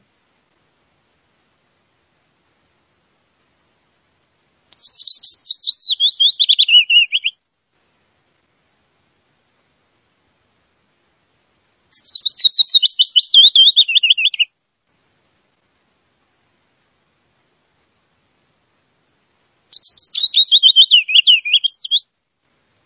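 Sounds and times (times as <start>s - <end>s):
Willow Warbler song: 4.7s - 7.4s, 11.9s - 14.5s, 19.7s - 22.1s.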